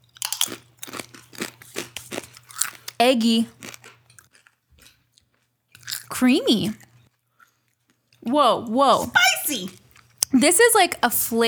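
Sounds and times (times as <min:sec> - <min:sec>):
flavored potato chips crunching while chewed: 0:00.0 - 0:08.2
speech: 0:03.0 - 0:03.6, 0:06.2 - 0:06.8, 0:08.2 - 0:11.4.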